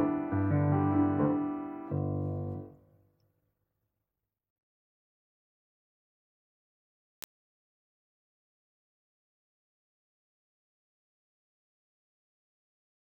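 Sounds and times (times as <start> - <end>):
song: 0.0 - 2.6.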